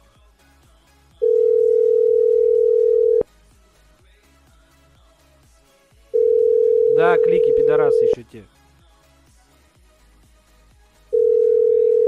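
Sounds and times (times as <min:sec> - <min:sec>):
dropped call telephone tone: 0:01.2 - 0:03.3, 0:06.2 - 0:08.2, 0:11.1 - 0:12.0
speech: 0:07.7 - 0:08.6.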